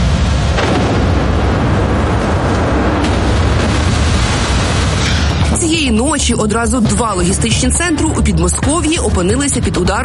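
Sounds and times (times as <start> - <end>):
big fire roaring at burning warehouses: 0.0 - 6.0
speech: 6.2 - 10.0.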